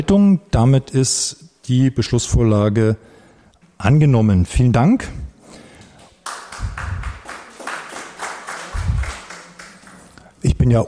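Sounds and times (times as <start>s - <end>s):
speech: 0.0s - 3.1s, 3.8s - 5.2s, 10.6s - 10.8s
group applause after a vote: 5.8s - 10.4s.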